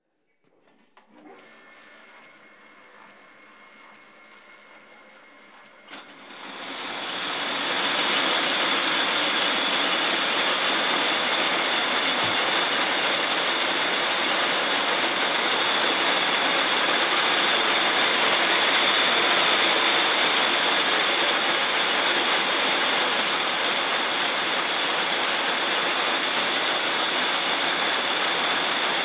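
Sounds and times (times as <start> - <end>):
spinning frame machine running: 1.6 - 29.0.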